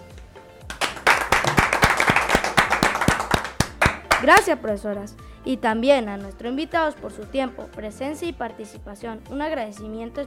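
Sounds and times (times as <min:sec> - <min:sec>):
applause: 0:00.7 - 0:04.5
speech: 0:04.2 - 0:10.2.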